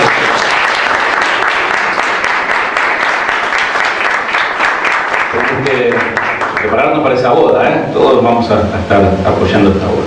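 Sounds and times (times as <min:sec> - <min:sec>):
audience applause: 0:00.0 - 0:07.5
speech: 0:06.9 - 0:10.0.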